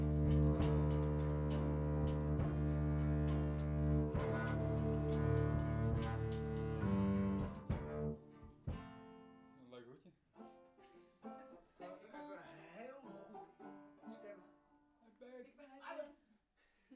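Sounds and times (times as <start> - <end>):
bass recorded through a microphone: 0.0 - 8.2.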